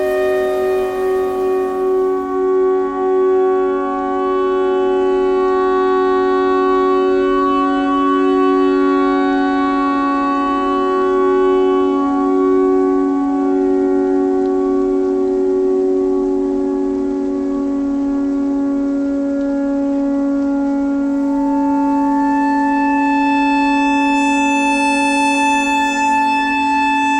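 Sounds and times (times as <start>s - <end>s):
clarinet notes: 0.0s - 4.3s, 19.8s - 27.1s
tornado siren: 0.0s - 27.1s.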